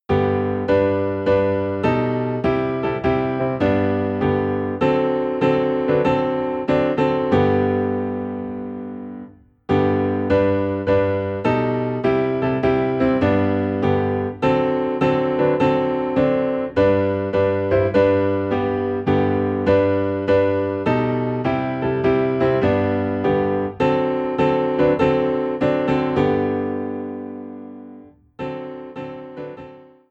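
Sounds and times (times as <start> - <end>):
piano playing in G: 0.0 - 30.1.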